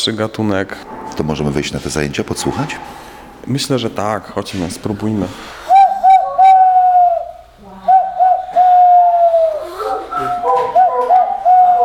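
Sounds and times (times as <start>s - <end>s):
speech: 0.0s - 5.6s
bird call imitated by blowing into cupped hands: 5.7s - 11.8s.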